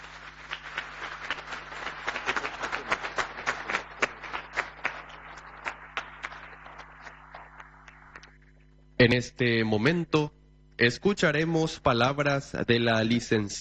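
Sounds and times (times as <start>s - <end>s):
audience applause: 0.0s - 8.4s
speech: 9.0s - 13.5s.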